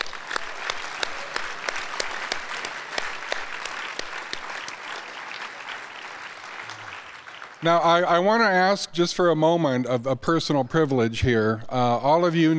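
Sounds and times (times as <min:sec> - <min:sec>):
audience applause: 0:00.0 - 0:08.1
speech: 0:07.6 - 0:12.5.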